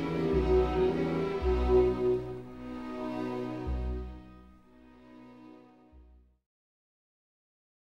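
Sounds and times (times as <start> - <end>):
string serenade: 0.0 - 6.1.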